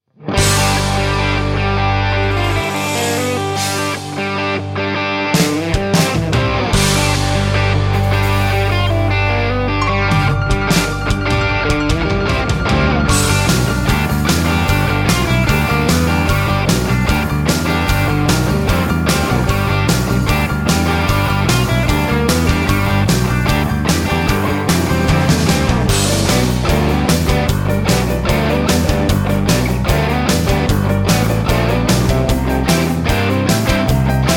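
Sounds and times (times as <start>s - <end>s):
song medley without backing vocals: 0.3s - 34.3s.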